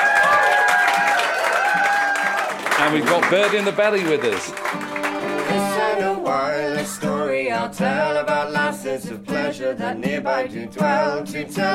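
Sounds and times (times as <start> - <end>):
pub crowd cheering and clapping: 0.0 - 6.2
speech: 2.8 - 11.7.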